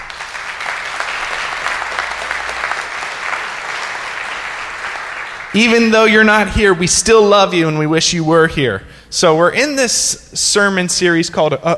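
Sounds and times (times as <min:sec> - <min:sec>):
audience applause: 0:00.0 - 0:05.9
speech: 0:05.6 - 0:11.7.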